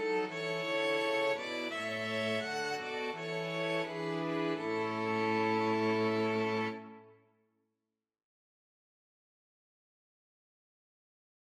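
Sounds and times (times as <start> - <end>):
string quartet playing anthem: 0.0 - 7.1.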